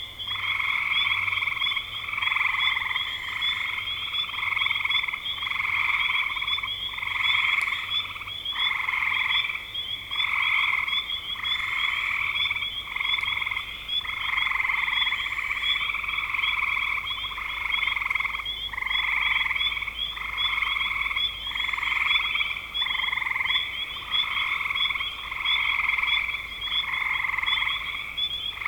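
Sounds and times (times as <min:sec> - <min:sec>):
frog chorus of pulsed trills: 0:00.0 - 0:28.6.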